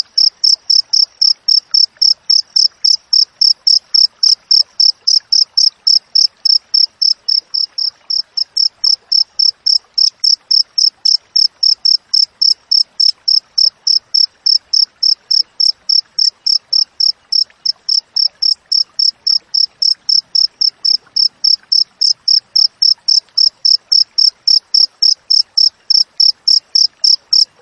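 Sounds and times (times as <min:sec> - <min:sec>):
cricket chirping: 0:00.0 - 0:27.5.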